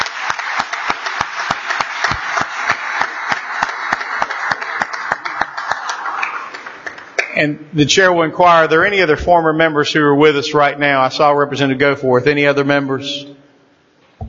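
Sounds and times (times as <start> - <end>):
applause: 0.0 - 7.4
speech: 7.4 - 13.3.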